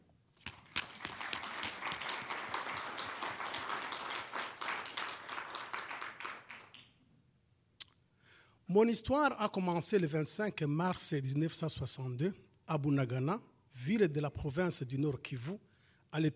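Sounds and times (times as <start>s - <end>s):
audience applause: 0.5s - 6.9s
speech: 8.7s - 16.3s.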